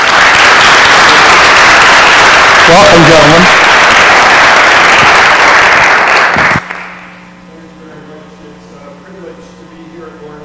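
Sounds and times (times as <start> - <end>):
audience applause welcoming a jazz quartet at a church worship service: 0.0 - 7.0
speech: 2.7 - 3.6.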